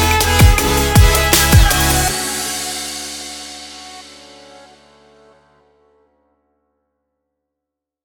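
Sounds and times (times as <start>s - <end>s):
Arabic future bass kit: 0.0s - 3.5s.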